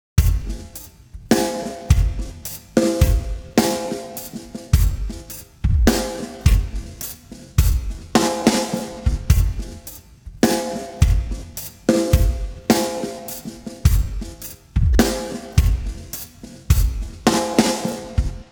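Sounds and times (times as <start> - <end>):
drums: 0.0 - 18.4.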